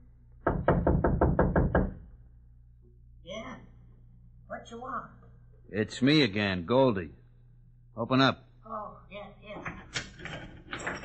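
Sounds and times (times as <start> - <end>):
knocking on a shack door: 0.4 - 2.1
speech: 4.6 - 7.2, 8.0 - 10.0.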